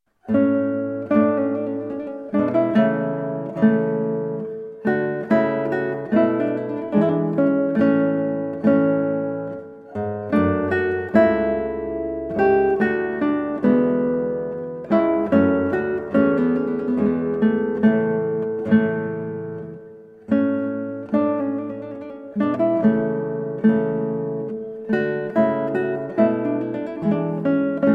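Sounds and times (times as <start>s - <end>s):
sarabande in A major on guitar: 0.1s - 27.9s.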